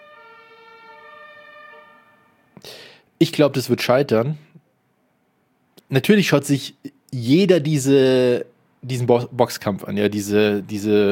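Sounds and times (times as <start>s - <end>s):
fire engine siren passing by: 0.0s - 2.6s
speech: 2.6s - 4.5s, 5.9s - 11.1s.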